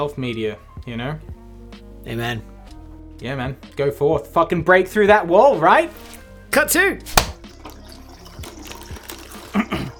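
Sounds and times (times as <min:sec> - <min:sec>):
speech: 0:00.0 - 0:01.3, 0:02.0 - 0:02.5, 0:03.2 - 0:07.2
man urinating, liquid trickling and splashing: 0:07.2 - 0:09.8.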